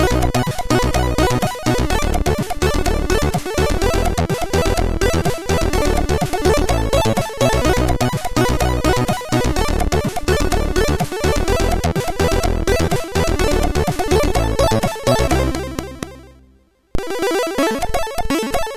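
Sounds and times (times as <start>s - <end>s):
chiptune music on MOS6581R3 sound chip: 0.0s - 16.3s, 17.0s - 18.7s.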